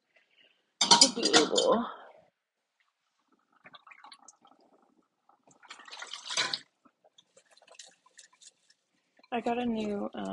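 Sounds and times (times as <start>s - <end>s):
dishes clinking and clattering: 0.8s - 1.8s
running tap water while washing dishes: 0.8s - 1.8s, 3.4s - 9.3s
speech: 1.1s - 2.0s, 9.4s - 10.3s.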